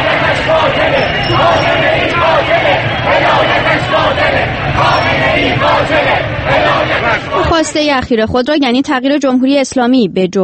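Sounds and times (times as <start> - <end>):
protesters chanting and shouting slogans: 0.0 - 8.0
speech: 7.6 - 10.4.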